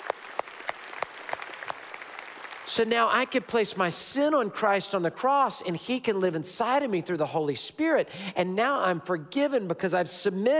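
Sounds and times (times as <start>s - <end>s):
church congregation applauding and cheering: 0.0s - 3.6s
speech: 2.7s - 10.5s.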